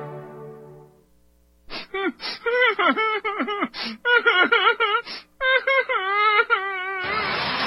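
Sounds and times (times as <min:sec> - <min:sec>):
whining whimpering vocal sound effect: 0:01.8 - 0:07.5.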